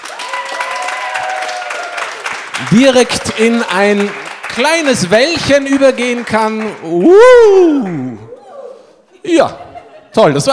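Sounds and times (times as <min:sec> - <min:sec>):
audience applause: 0:00.0 - 0:08.2
speech: 0:02.6 - 0:08.2, 0:09.2 - 0:10.5
laughter: 0:08.3 - 0:10.5.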